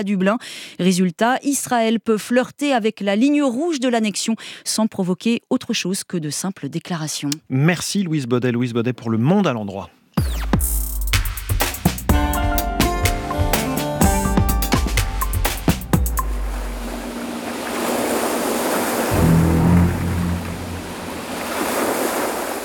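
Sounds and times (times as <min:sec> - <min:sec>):
speech: 0:00.0 - 0:10.8
film score music: 0:12.1 - 0:21.9
surf: 0:13.0 - 0:22.6
wind: 0:16.1 - 0:22.6.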